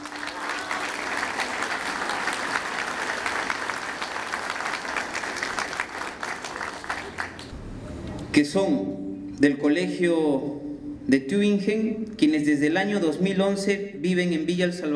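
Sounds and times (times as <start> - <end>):
audience applause: 0.0 - 7.5
speech: 8.4 - 10.5, 11.1 - 14.9.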